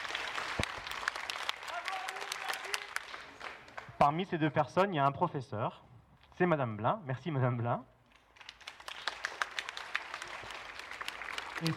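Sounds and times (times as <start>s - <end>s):
audience applause: 0.0s - 4.0s, 8.4s - 11.7s
speech: 4.0s - 7.9s, 11.6s - 11.7s.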